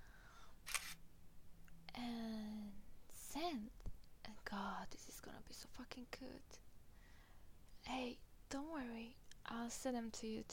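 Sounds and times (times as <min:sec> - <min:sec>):
phone camera shutter click taking a selfie: 0:00.7 - 0:01.0
speech: 0:03.4 - 0:06.6, 0:07.9 - 0:10.5.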